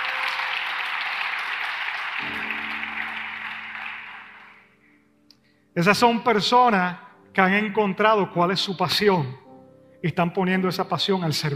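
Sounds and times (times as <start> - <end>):
audience applause: 0.0 - 4.8
speech: 5.8 - 9.4, 10.0 - 11.5.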